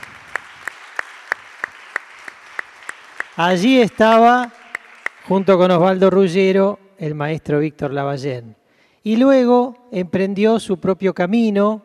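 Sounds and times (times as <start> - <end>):
audience applause: 0.0 - 5.5
speech: 3.4 - 4.6, 5.3 - 11.8.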